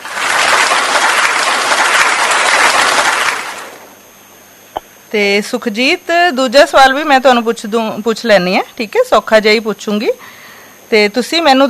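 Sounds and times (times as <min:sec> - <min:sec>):
audience applause for a correct answer in a quiz about the Punjabi script: 0:00.0 - 0:03.9
speech: 0:05.1 - 0:11.6.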